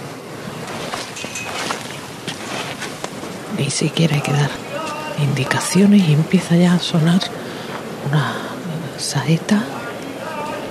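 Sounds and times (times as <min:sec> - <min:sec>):
float bearers' slippers shuffling on street: 0:00.1 - 0:05.4
speech: 0:03.6 - 0:04.6, 0:05.2 - 0:08.4, 0:09.0 - 0:09.8.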